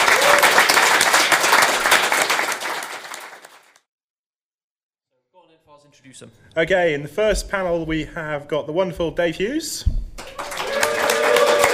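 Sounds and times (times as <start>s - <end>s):
audience round of applause: 0.0s - 3.8s, 10.2s - 11.7s
speech: 6.0s - 10.0s.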